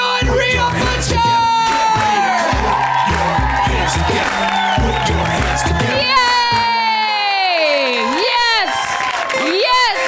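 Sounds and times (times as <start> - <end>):
thumping, stepping bassline: 0.0 - 6.9
audience at a comedy show cheering, whooping and clapping for the hosts: 0.0 - 10.0
speech: 0.2 - 1.5.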